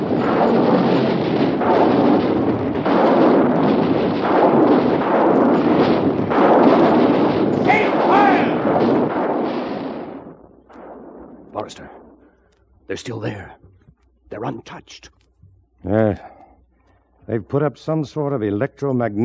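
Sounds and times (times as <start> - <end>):
artillery batteries firing shells in a radio drama: 0.0 - 12.4
speech: 13.0 - 13.6, 14.3 - 15.2, 15.8 - 16.4, 17.3 - 19.2.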